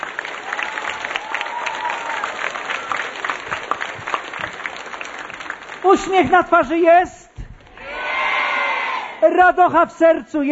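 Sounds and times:
audience applause: 0.0s - 6.2s
speech: 5.9s - 7.2s, 9.3s - 10.5s.

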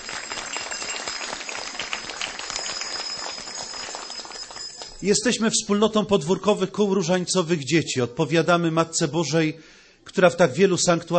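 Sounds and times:
audience applause: 0.0s - 5.0s
speech: 5.0s - 11.1s.

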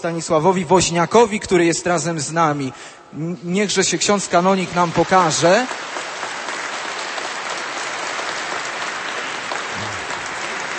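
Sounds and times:
speech: 0.0s - 6.0s
audience applause: 4.7s - 10.7s.

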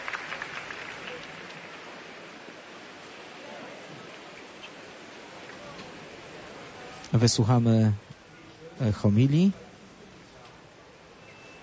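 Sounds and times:
large crowd applauding: 0.0s - 2.3s
faint murmur of voices: 0.0s - 11.6s
speech: 7.1s - 8.1s, 8.8s - 9.6s.

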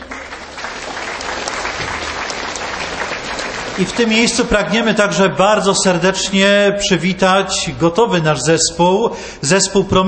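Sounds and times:
audience applause: 0.0s - 4.7s
speech: 3.8s - 10.0s.

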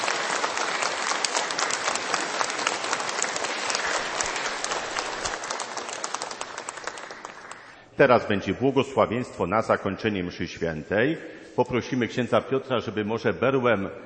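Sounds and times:
sustained crowd applause: 0.0s - 7.8s
speech: 8.0s - 14.0s.

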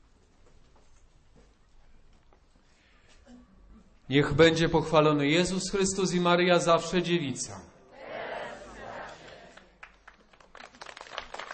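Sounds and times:
speech: 4.1s - 7.8s
mixed crowd voices: 7.9s - 9.6s
large crowd applause: 8.0s - 11.5s.

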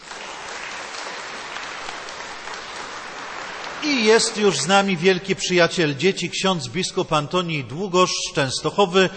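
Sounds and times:
applause: 0.0s - 5.0s
speech: 3.8s - 9.1s.

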